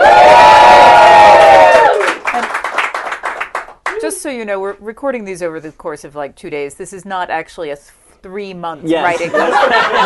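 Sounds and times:
live audience cheering: 0:00.0 - 0:04.2
scattered clapping: 0:01.6 - 0:04.0
speech: 0:04.2 - 0:10.0
laughter: 0:09.0 - 0:10.0.

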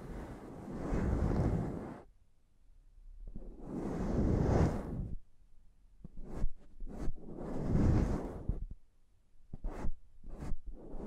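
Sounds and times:
scratching and rubbing on a microphone: 0:00.0 - 0:02.1, 0:03.3 - 0:05.2, 0:06.0 - 0:08.8, 0:09.5 - 0:11.0.

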